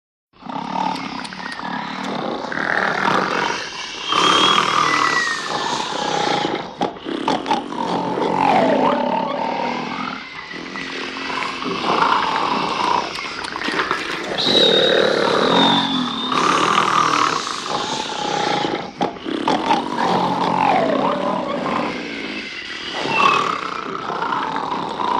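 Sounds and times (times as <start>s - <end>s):
group exaggerated snoring: 0.4s - 25.1s.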